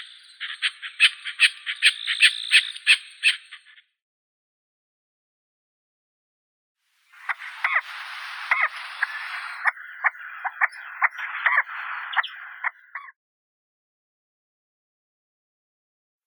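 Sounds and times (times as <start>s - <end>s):
chukar Alectoris chukar calling: 0.0s - 3.8s, 7.2s - 13.1s.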